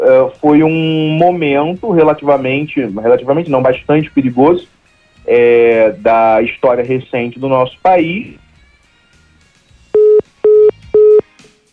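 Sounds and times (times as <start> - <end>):
speech: 0.2 - 8.4
phone line tone after a dropped call: 10.0 - 11.2.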